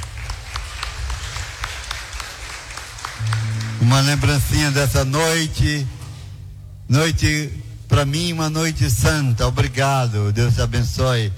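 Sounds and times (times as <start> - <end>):
audience applause: 0.0 - 5.2
speech: 3.8 - 6.0, 6.9 - 11.3.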